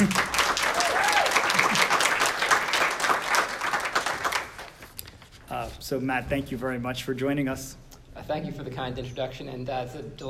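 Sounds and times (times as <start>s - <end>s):
speech: 0.0s - 0.2s, 5.9s - 10.2s
audience applause at gala dinner: 0.0s - 4.8s.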